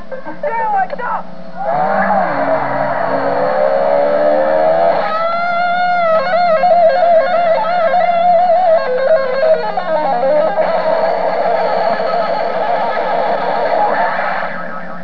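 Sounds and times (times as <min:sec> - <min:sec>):
electric guitar: 0:01.6 - 0:15.0.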